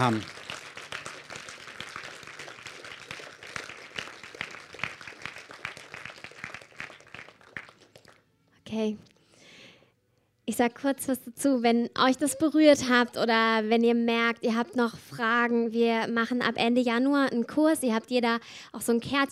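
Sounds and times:
speech: 0:00.0 - 0:00.4, 0:08.8 - 0:09.1, 0:10.5 - 0:19.3
audience applause: 0:00.0 - 0:08.2.

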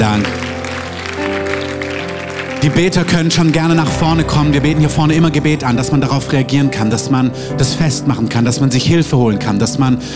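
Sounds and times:
audience applause: 0:00.0 - 0:04.1
speech: 0:02.6 - 0:10.1.

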